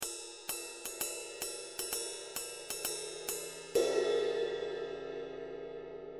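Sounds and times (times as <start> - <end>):
ZXT 20 CTR ride cymbal: 0.0 - 6.1.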